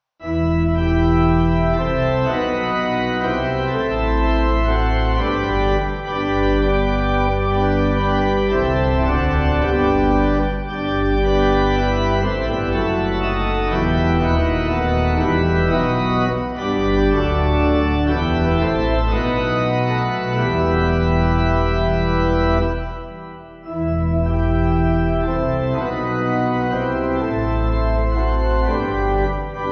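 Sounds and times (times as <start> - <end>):
church pipe organ backing music: 0.2 - 29.7.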